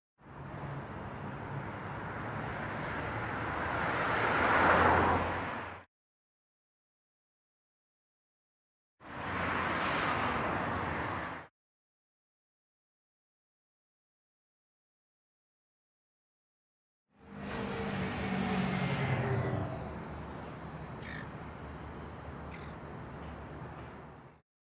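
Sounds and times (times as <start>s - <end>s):
cars on the Golden Gate Bridge: 0.3s - 5.8s, 9.2s - 11.4s, 17.2s - 24.4s.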